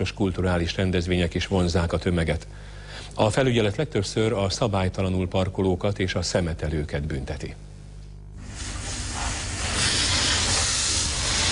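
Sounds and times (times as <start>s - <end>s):
speech: 0.0s - 7.7s
high-pressure water spray washing a fountain: 8.4s - 11.4s.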